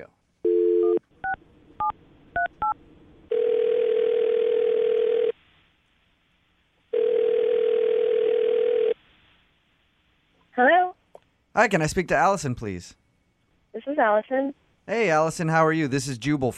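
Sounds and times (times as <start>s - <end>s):
phone dial tone: 0.5s - 1.4s, 2.4s - 5.3s, 6.9s - 9.0s
speech: 11.6s - 13.0s, 13.8s - 16.5s.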